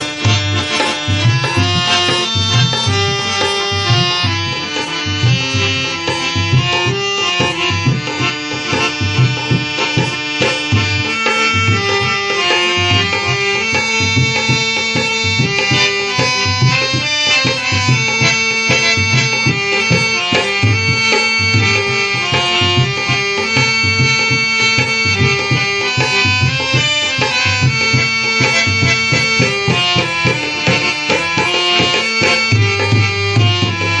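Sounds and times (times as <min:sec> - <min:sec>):
dholak drum: 0:00.0 - 0:33.9
harmonium: 0:00.0 - 0:33.9.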